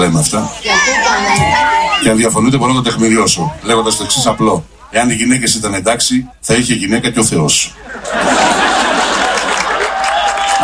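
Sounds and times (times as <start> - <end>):
speech: 0.0 - 8.6
laughter: 7.7 - 10.6
audience clapping: 8.5 - 10.6.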